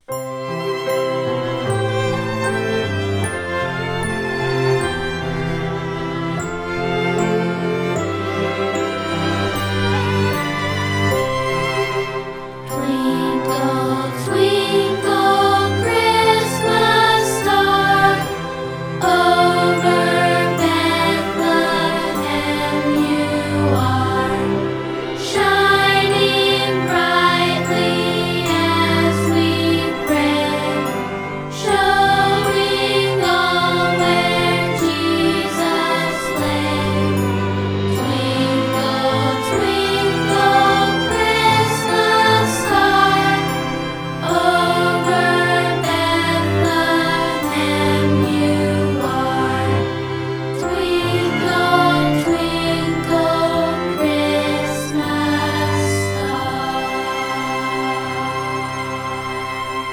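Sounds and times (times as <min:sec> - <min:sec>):
Christmas song: 0:00.0 - 0:59.9.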